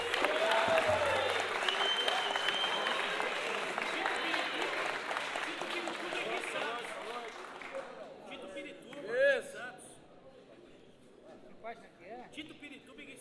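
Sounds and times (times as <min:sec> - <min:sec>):
audience applause: 0:00.0 - 0:08.1.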